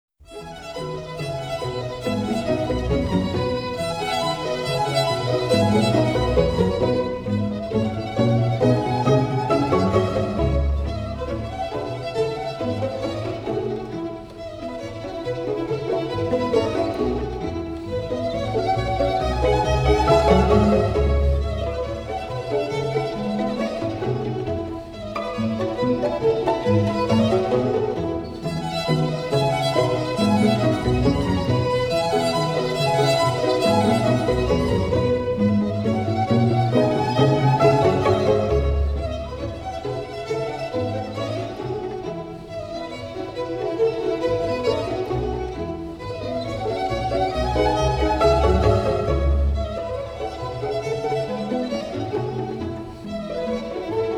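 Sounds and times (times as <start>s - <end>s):
string ensemble music: 0.2s - 54.1s.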